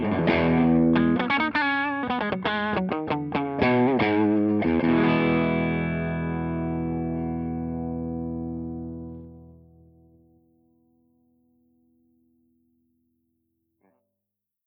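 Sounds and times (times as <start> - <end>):
electric guitar with humbucker through Marshall JTM60 channel 2 crunch: 0.0 - 9.5.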